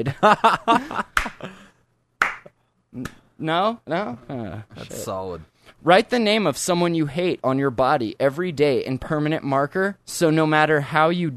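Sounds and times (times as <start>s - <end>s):
speech: 0.0s - 1.6s, 2.9s - 11.3s
slow clap: 0.9s - 1.5s, 2.2s - 3.2s.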